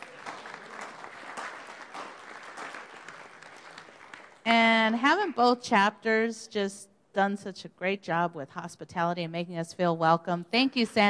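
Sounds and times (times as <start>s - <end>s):
convention audience applauding a person just introduced: 0.0s - 4.4s
speech: 4.5s - 11.0s.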